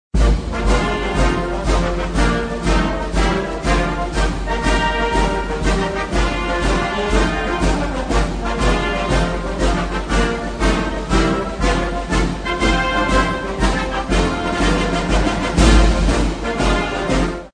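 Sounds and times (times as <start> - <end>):
military song: 0.2 - 17.5.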